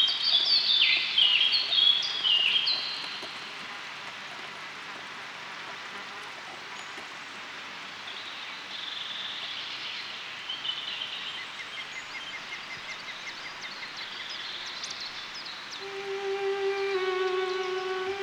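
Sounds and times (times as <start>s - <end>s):
stream in a forest: 0.0s - 18.2s
Lapland bunting singing: 15.8s - 18.2s.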